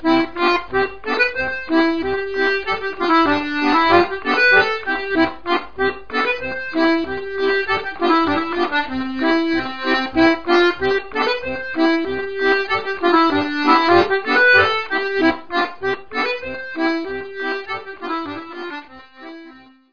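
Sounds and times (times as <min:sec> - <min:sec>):
Scottish dance tune from Sud-Ouest France: 0:00.0 - 0:19.8.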